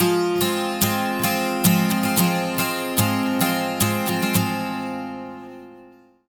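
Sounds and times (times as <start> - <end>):
12-string acoustic guitar loops at 110: 0.0 - 6.2.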